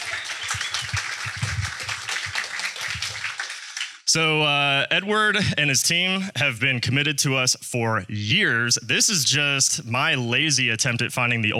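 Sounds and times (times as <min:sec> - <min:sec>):
audience round of applause: 0:00.0 - 0:04.1
speech: 0:04.1 - 0:11.5.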